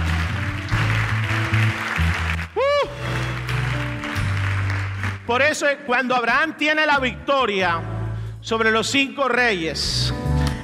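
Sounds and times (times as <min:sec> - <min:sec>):
audience applauding: 0:00.0 - 0:05.5
speech: 0:05.3 - 0:10.2.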